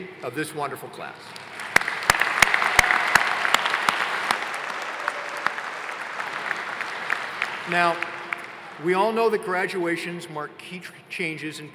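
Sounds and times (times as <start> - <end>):
speech: 0.1 - 1.6, 7.7 - 8.2, 8.8 - 11.7
audience applause: 1.4 - 8.9.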